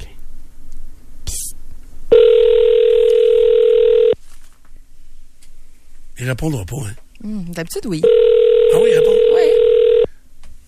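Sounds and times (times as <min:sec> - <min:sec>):
telephone ring tone on outgoing call: 0:02.1 - 0:04.2, 0:08.0 - 0:10.1
speech: 0:06.3 - 0:09.6.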